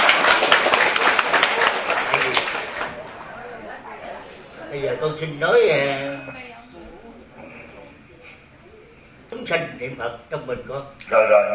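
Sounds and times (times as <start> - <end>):
crowd clapping at a Buddhist dharma gathering: 0.0 - 3.4
speech: 5.0 - 6.4, 9.5 - 11.5.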